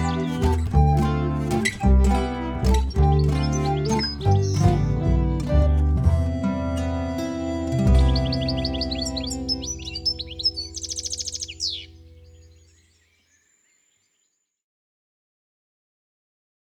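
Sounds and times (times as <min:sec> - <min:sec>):
instrumental music: 0:00.0 - 0:12.0.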